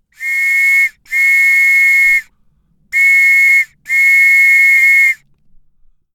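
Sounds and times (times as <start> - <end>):
police whistle: 0.2 - 2.3, 3.0 - 5.2.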